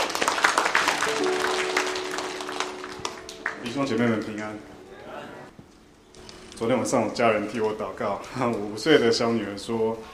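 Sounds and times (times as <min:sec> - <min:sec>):
audience applauding a speaker: 0:00.0 - 0:04.4
speech: 0:03.6 - 0:04.8, 0:06.6 - 0:10.1.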